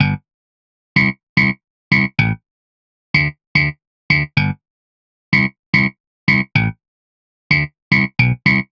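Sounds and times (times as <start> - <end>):
bass: 0.0 - 0.3, 1.0 - 2.4, 3.2 - 4.6, 5.3 - 6.8, 7.5 - 8.7.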